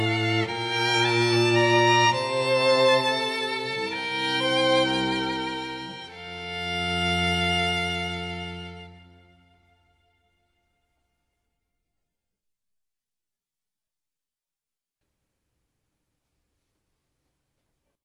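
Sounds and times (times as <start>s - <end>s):
violin viola cello trio playing: 0.0s - 10.0s.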